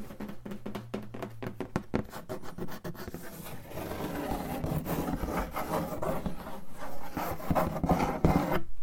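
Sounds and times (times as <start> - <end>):
cardboard being rubbed and scratched: 0.0 - 8.7.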